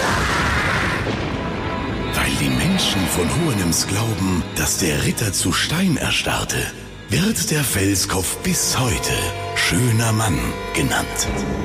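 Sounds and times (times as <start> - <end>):
thunder crash of a lightning strike: 0.0 - 4.0
speech: 2.8 - 11.6.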